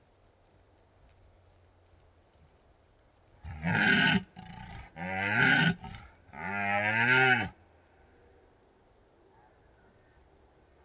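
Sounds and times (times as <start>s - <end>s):
red deer stag roaring: 3.4s - 7.6s.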